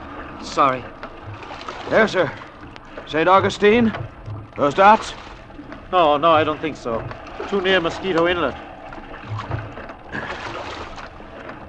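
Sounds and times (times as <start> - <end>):
low wooden knocks: 0.0 - 11.6
oars splashing and pulling through water as a boat is rowed: 0.0 - 11.6
speech: 0.4 - 2.4, 3.1 - 5.2, 5.9 - 8.6.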